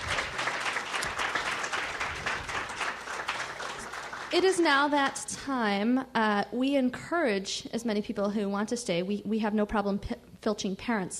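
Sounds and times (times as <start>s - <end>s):
audience applause for scholarship class: 0.0s - 4.7s
speech: 4.3s - 11.1s.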